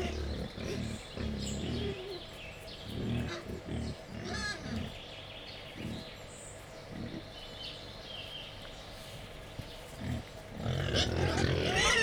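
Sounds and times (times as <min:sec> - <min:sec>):
wild boar grunting: 0:00.0 - 0:05.0, 0:09.9 - 0:12.0.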